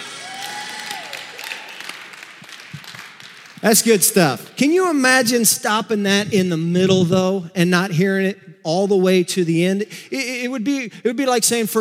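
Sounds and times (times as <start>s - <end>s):
audience hand clapping: 0.0s - 4.4s
speech: 3.6s - 11.7s.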